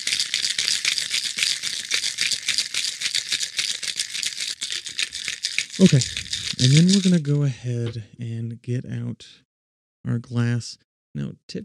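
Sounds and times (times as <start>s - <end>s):
shaking a cocktail shaker: 0.0s - 7.4s
speech: 5.8s - 9.4s, 10.0s - 11.6s.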